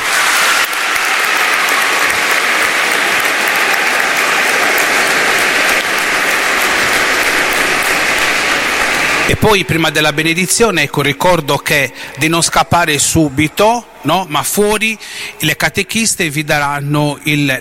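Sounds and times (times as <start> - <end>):
audience applause: 0.0 - 11.8
speech: 9.3 - 17.5.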